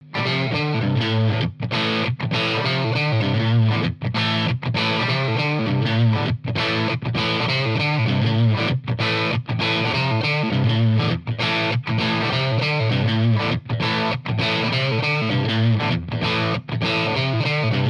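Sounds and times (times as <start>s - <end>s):
Strat electric guitar with boost: 0.0s - 17.8s.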